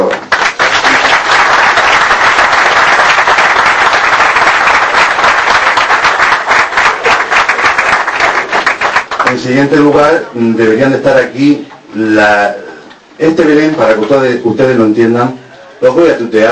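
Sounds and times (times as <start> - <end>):
audience applause: 0.0 - 9.4
speech: 9.5 - 12.6, 13.2 - 16.5.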